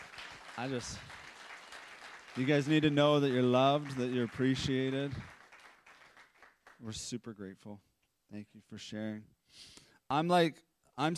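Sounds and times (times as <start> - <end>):
audience applause: 0.0 - 6.8
speech: 0.6 - 1.2, 2.4 - 5.3, 6.8 - 11.1.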